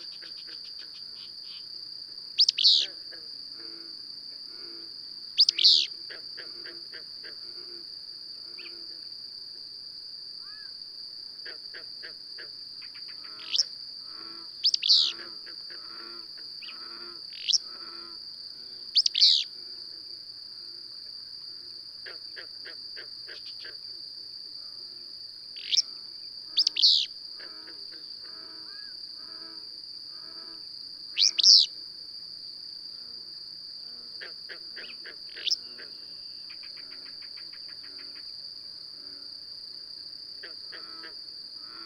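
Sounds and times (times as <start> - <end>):
shrill insect hum: 0.0 - 41.8
bird chirps: 2.4 - 2.9, 5.4 - 5.9, 14.6 - 15.2, 19.0 - 19.4, 26.6 - 27.1, 31.2 - 31.7.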